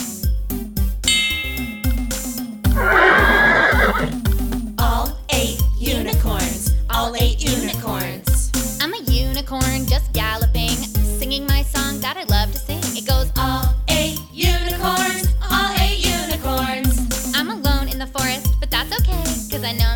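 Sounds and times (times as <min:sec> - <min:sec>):
bouncy rhythmic music with a steady beat: 0:00.0 - 0:19.9
horse whinnying: 0:02.7 - 0:04.2.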